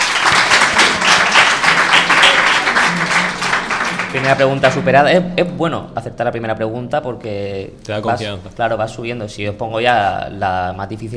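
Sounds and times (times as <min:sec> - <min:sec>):
audience applause: 0:00.0 - 0:04.8
speech: 0:04.1 - 0:11.1.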